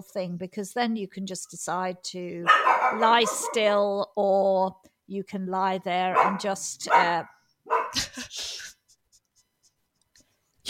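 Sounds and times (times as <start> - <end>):
speech: 0.0 - 7.4
dog barking at people moving outside: 2.4 - 3.8, 6.1 - 8.0.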